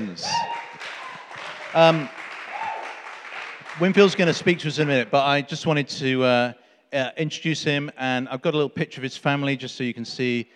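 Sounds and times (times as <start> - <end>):
person cheering: 0.0 - 3.1
audience clapping: 0.0 - 5.1
speech: 1.7 - 2.2, 3.8 - 10.5.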